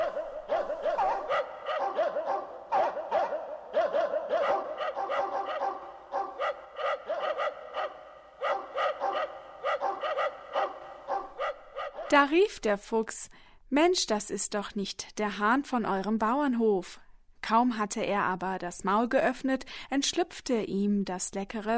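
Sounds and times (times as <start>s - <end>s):
several dogs barking: 0.0s - 12.2s
speech: 12.1s - 21.7s.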